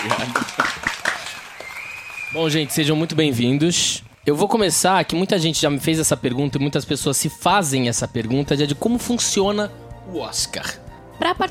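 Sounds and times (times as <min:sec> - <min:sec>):
speech: 0:00.0 - 0:00.7, 0:02.3 - 0:11.4
cheering: 0:00.0 - 0:04.4
scattered audience clapping: 0:00.0 - 0:05.2.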